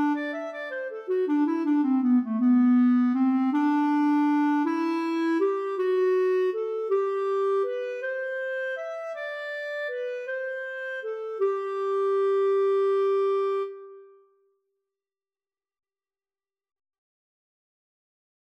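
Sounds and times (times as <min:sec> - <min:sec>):
waltz music: 0:00.0 - 0:14.1.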